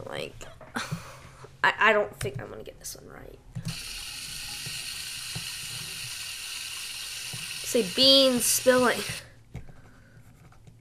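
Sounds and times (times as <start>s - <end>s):
speech: 0.2s - 0.9s, 1.6s - 3.8s, 7.7s - 9.2s
water running from a tap: 3.7s - 9.3s.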